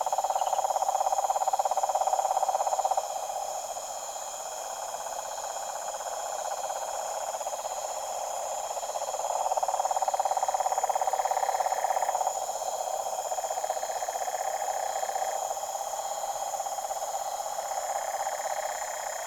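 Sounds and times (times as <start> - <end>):
deep toad chorus at a tropical pond at night: 0.0 - 19.2.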